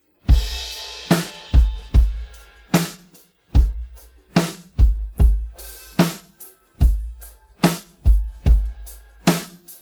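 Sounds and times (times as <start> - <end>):
drum pattern: 0.3 - 9.7.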